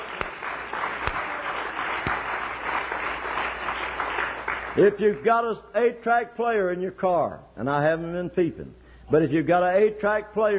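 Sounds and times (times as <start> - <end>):
audience clapping hands: 0.0 - 5.0
speech: 4.8 - 10.5.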